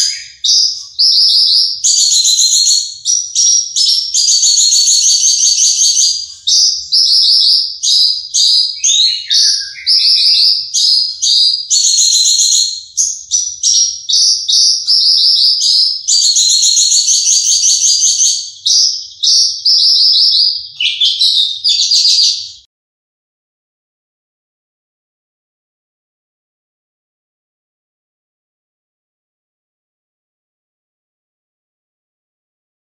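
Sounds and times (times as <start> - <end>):
Horsfield's bush lark song: 0.0 - 22.7.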